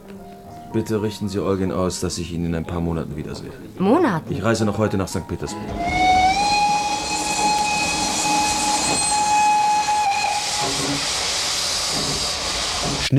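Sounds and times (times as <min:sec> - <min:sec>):
speech: 0:00.7 - 0:06.0
steam train hissing steam at a station in St. Petersburg: 0:05.5 - 0:13.1
steam train whistle: 0:05.6 - 0:13.1.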